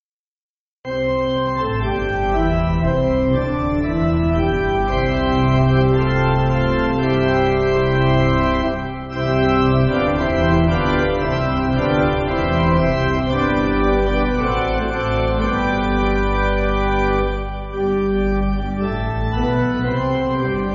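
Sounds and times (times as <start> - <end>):
church pipe organ backing music: 0.9 - 20.7.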